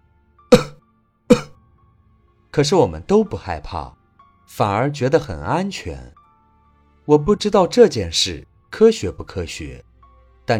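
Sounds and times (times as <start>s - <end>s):
old man's hoarse cough: 0.5s - 1.5s
speech: 2.6s - 6.2s, 7.1s - 9.9s.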